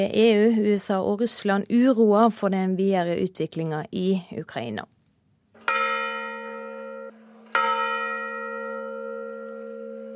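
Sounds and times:
speech: 0:00.0 - 0:05.0
church bells ringing for a demonstrator's funeral: 0:05.6 - 0:10.1.

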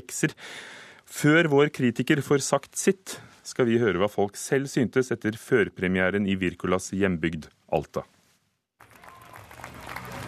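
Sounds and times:
speech: 0:00.1 - 0:08.2
audience applause after film premiere in Alta: 0:08.8 - 0:10.2.

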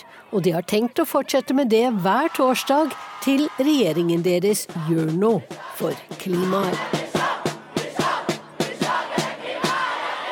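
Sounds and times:
speech: 0:00.3 - 0:07.0
protesting schoolchildren chanting climate slogans: 0:02.0 - 0:10.3
sharp regular claps or drum hits: 0:03.9 - 0:10.3.

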